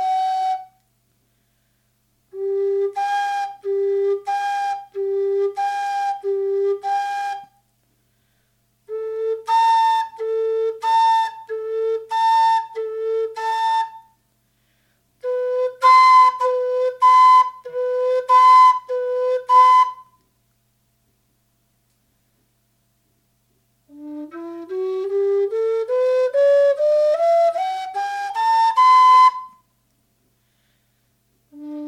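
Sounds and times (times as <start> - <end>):
whistle: 0.0 - 0.9, 2.3 - 7.6, 8.9 - 14.2, 15.2 - 20.3, 23.9 - 29.7.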